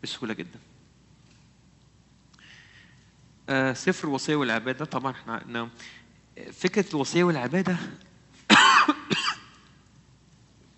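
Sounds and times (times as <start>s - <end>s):
speech: 0.0s - 0.8s, 3.5s - 8.1s
person coughing: 8.5s - 9.6s.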